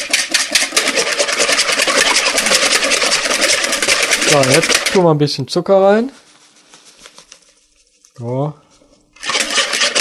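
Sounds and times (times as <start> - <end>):
electric mixer whipping at high speed: 0.6 - 5.0, 9.2 - 9.9
speech: 4.3 - 6.2, 8.2 - 8.6.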